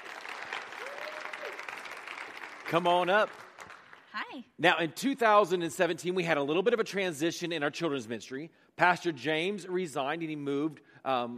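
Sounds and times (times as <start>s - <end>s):
round of applause: 0.0s - 4.3s
speech: 2.7s - 3.4s, 4.3s - 11.3s.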